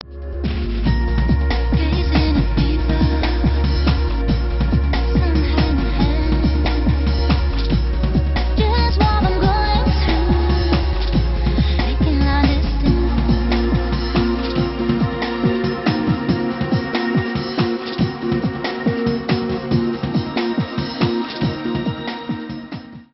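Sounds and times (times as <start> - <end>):
club mix dance music: 0.0 - 23.1.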